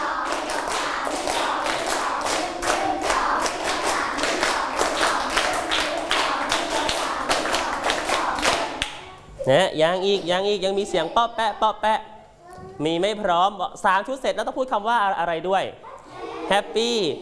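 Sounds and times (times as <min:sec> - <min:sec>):
group clapping hands rhythmically in sets: 0:00.0 - 0:09.1
speech: 0:09.5 - 0:17.1.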